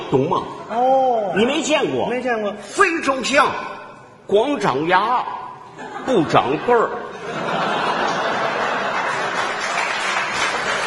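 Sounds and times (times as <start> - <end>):
speech: 0.1 - 7.6
laughter: 5.7 - 10.8
audience applause: 8.1 - 10.8.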